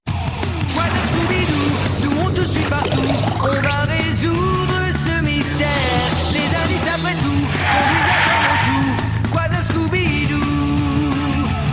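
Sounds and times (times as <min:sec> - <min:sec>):
upbeat cartoon series opening theme with sung vocals: 0:00.1 - 0:11.7.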